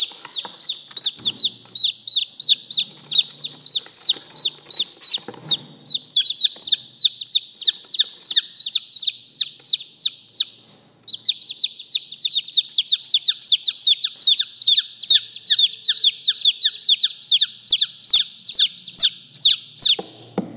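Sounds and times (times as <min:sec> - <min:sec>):
chicken chicks peeping: 0:00.0 - 0:20.1.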